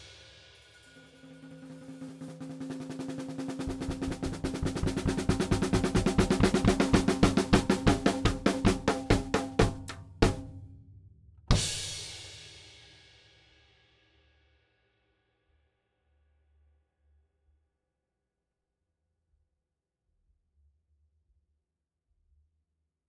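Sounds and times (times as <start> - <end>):
drums: 0.0 - 14.3.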